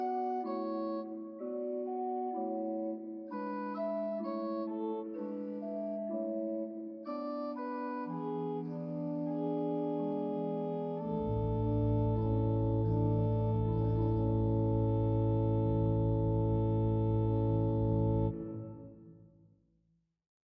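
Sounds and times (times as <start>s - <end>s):
church organ playing in Saint-Pierre de Sales Marennes: 0.0s - 19.2s.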